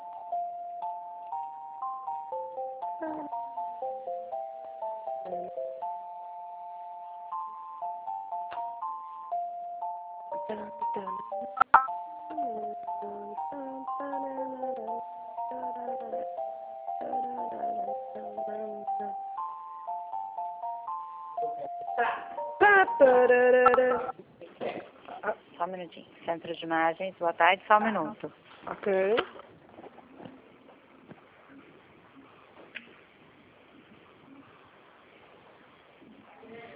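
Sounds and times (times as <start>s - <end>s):
telephone hold music with thin electronic melody: 0.0s - 24.2s
speech: 3.0s - 3.4s, 10.5s - 11.6s, 23.0s - 24.1s, 25.7s - 29.4s.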